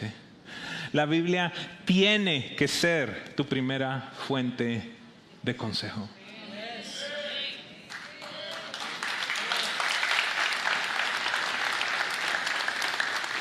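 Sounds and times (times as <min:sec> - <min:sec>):
speech: 0:00.9 - 0:06.2
crowd applause: 0:07.9 - 0:13.3.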